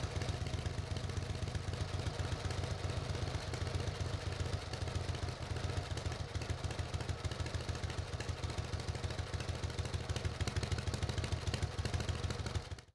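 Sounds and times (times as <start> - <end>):
Harley motorcycle engine idling unsteadily: 0.0 - 12.9.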